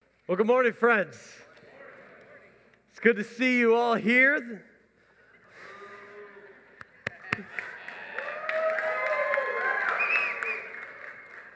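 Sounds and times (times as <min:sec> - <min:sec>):
speech: 0:00.3 - 0:01.4, 0:03.0 - 0:04.7
audience clapping: 0:06.8 - 0:11.5
audience voices whooping and cheering: 0:07.2 - 0:11.5.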